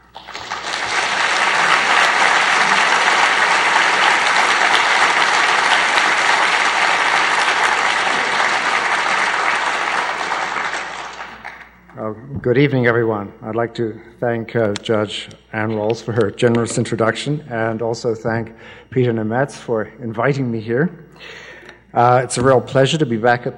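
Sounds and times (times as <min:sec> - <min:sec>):
audience applause welcoming a speaker at the Vancouver Institute: 0:00.0 - 0:11.7
speech: 0:12.4 - 0:23.5.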